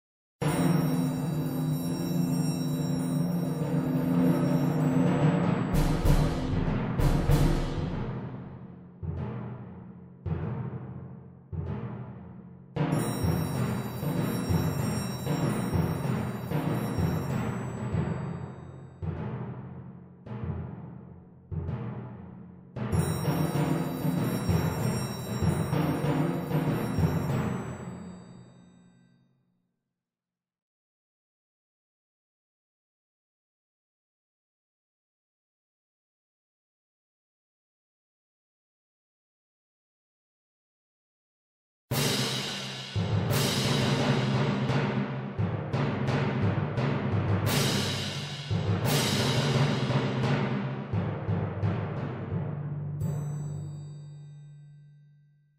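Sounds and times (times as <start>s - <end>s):
percussion: 0.4s - 29.3s, 41.9s - 55.4s.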